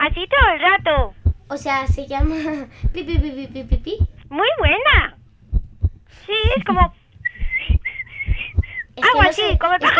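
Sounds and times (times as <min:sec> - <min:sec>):
speech: 0:00.2 - 0:05.1, 0:06.1 - 0:07.0, 0:09.0 - 0:09.9
people talking and laughing loudly: 0:02.1 - 0:04.1, 0:06.3 - 0:09.9
person whistling short steady high notes: 0:07.2 - 0:08.9.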